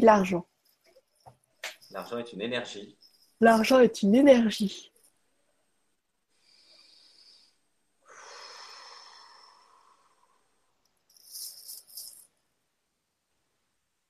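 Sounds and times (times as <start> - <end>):
speech: 0.0 - 0.5, 1.9 - 4.9
soft slow breathing: 6.3 - 10.9.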